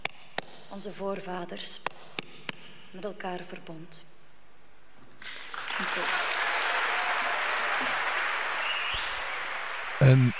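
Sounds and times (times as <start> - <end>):
speech: 0.7 - 1.9, 2.9 - 4.1, 5.8 - 6.2, 10.0 - 10.3
audience applause after poetry reading: 5.2 - 10.3.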